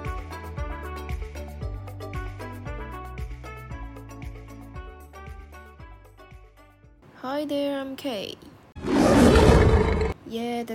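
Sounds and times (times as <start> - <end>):
speech: 7.2 - 8.5, 10.3 - 10.7
cartoon lion roar: 8.8 - 10.2.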